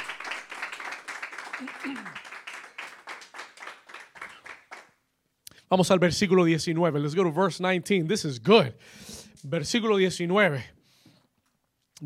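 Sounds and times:
audience applause: 0:00.0 - 0:05.0
speech: 0:01.6 - 0:02.3, 0:05.7 - 0:10.8.

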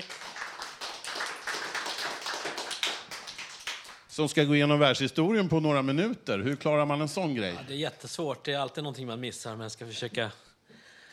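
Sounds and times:
audience applause: 0:00.0 - 0:04.1
speech: 0:04.2 - 0:10.5.

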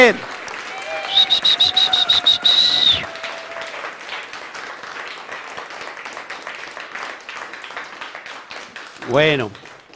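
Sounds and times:
speech: 0:00.0 - 0:00.3, 0:09.1 - 0:09.6
crowd cheering: 0:00.0 - 0:06.6
crowd clapping: 0:00.0 - 0:09.9
shrill piercing whistle: 0:00.9 - 0:03.2.

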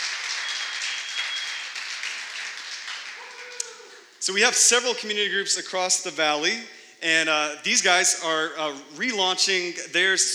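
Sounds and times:
audience clapping for leaders: 0:00.0 - 0:04.2
speech: 0:04.2 - 0:10.3.

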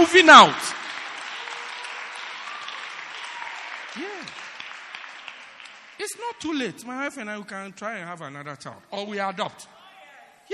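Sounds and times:
speech: 0:00.0 - 0:00.7, 0:06.1 - 0:09.8
audience clapping: 0:00.0 - 0:06.8
person whooping: 0:02.4 - 0:04.4.

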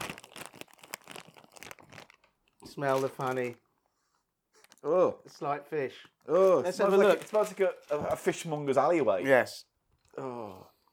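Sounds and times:
package being opened: 0:00.0 - 0:03.6, 0:06.2 - 0:08.6
speech: 0:02.7 - 0:03.6, 0:04.8 - 0:10.7.

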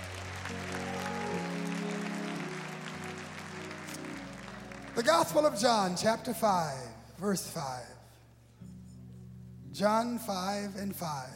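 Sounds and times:
audience applauding: 0:00.0 - 0:06.1
speech: 0:05.0 - 0:08.0, 0:09.8 - 0:11.3.

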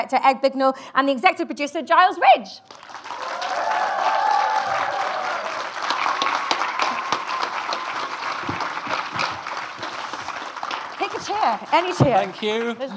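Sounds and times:
speech: 0:00.0 - 0:03.3, 0:11.2 - 0:12.9
audience applause: 0:02.7 - 0:12.9
cheers and whoops: 0:03.0 - 0:08.6.

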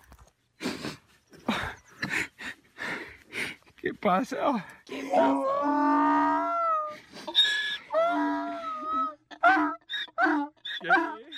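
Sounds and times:
speech: 0:04.0 - 0:06.0
donkey crying: 0:05.0 - 0:11.3.

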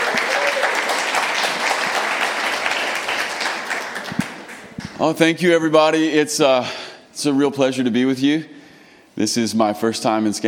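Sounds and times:
crowd applause: 0:00.0 - 0:05.0
speech: 0:05.0 - 0:08.6, 0:09.2 - 0:10.4.

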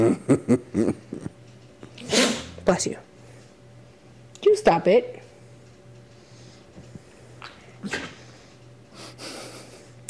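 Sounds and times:
speech: 0:00.0 - 0:00.7, 0:02.7 - 0:03.0, 0:04.8 - 0:05.2
low steady hum: 0:00.0 - 0:10.0
dogs snorting and breathing: 0:01.1 - 0:03.6, 0:06.2 - 0:10.0.

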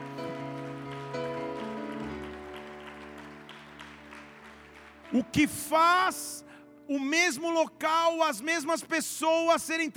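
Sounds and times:
audience applauding: 0:00.0 - 0:05.8
speech: 0:05.1 - 0:09.9.

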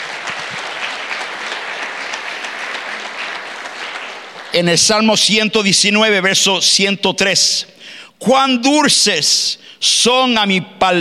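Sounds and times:
loud applause: 0:00.0 - 0:05.1
speech: 0:04.6 - 0:10.9.

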